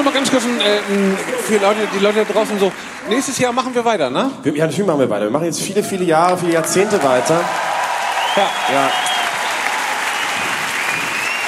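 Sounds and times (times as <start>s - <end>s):
studio audience applause: 0.0s - 4.0s, 6.3s - 11.4s
speech: 0.0s - 7.8s, 8.4s - 9.1s.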